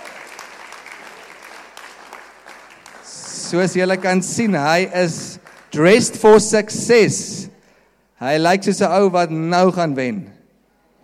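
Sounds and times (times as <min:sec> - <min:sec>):
audience applause: 0:00.0 - 0:06.3
speech: 0:03.5 - 0:07.5, 0:08.2 - 0:10.4.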